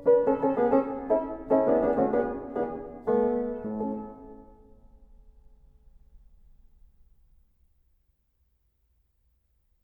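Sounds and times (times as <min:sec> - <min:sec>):
piano piece in A major: 0:00.0 - 0:06.6.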